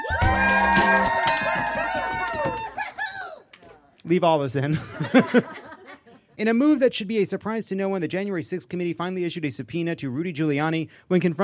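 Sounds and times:
crowd cheering and whooping: 0.0s - 3.8s
scattered clapping: 0.2s - 2.9s
speech: 4.1s - 5.6s, 6.4s - 11.4s
laughter: 4.7s - 6.3s.

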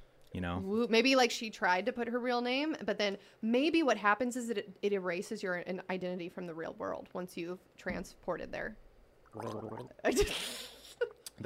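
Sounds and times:
speech: 0.3s - 10.7s
person gargling water: 9.3s - 10.0s.

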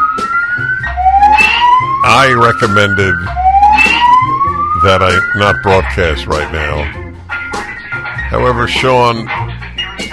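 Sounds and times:
fire drill alarm in building: 0.0s - 5.8s
speech: 2.1s - 3.4s, 4.8s - 7.0s, 8.3s - 9.4s.

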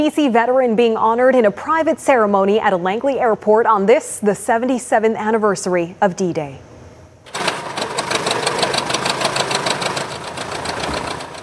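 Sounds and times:
speech: 0.0s - 6.7s
vintage Tiger Moth biplane piston engine starting up: 7.3s - 11.4s.

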